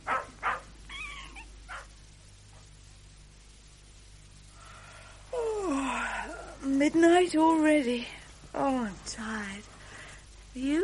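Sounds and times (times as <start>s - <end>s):
low steady hum: 0.0s - 10.8s
puppy whining: 0.9s - 1.5s
speech: 6.8s - 9.7s, 10.6s - 10.8s.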